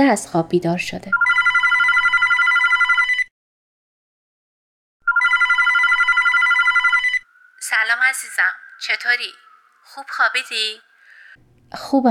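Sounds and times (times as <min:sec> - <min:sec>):
speech: 0:00.0 - 0:01.3, 0:10.0 - 0:12.1
telephone ringing at home: 0:01.1 - 0:03.3, 0:05.0 - 0:08.3.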